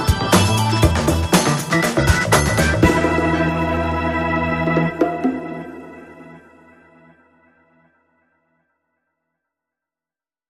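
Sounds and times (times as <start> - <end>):
rhythm section playing: 0.0 - 6.8.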